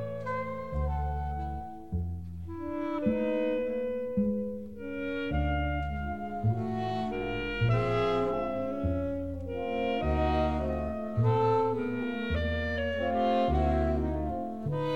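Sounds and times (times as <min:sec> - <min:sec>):
contrapuntal blues music: 0:00.0 - 0:14.9.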